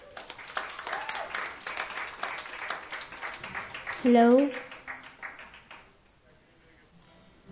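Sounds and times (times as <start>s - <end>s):
audience applause at a songwriters' showcase night: 0.0s - 6.0s
speech: 4.0s - 4.7s.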